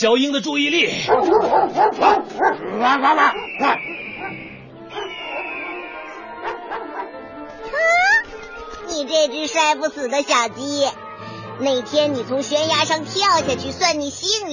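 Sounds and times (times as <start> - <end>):
speech: 0.0 - 5.2, 9.0 - 11.0, 11.6 - 14.5
hunting dog barking: 1.0 - 7.3
hunting dog whining: 1.1 - 8.3.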